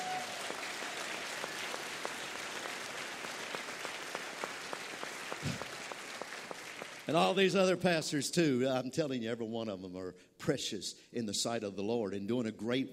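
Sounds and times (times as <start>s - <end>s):
audience applause: 0.0s - 7.5s
speech: 7.1s - 12.9s.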